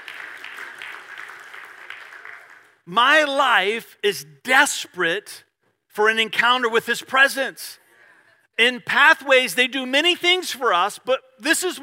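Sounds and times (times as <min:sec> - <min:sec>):
audience clapping: 0:00.0 - 0:02.9
speech: 0:02.9 - 0:07.8, 0:08.6 - 0:11.8.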